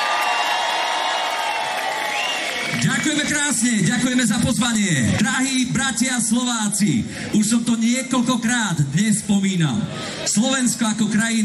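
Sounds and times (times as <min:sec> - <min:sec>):
whoops: 0:00.0 - 0:02.7
crowd cheering and applauding: 0:00.0 - 0:04.3
speech: 0:03.0 - 0:11.4.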